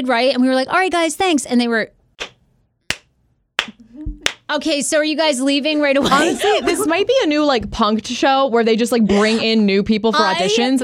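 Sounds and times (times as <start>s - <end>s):
speech: 0.0s - 2.0s, 4.0s - 10.8s
hand claps: 2.2s - 4.5s
laughter: 6.0s - 7.3s.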